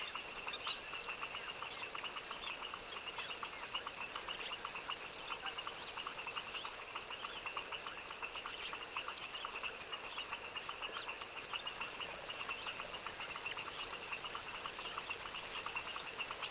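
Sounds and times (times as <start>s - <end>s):
foaming frog chorus in a tropical wetland swamp at dusk: 0.0s - 16.4s.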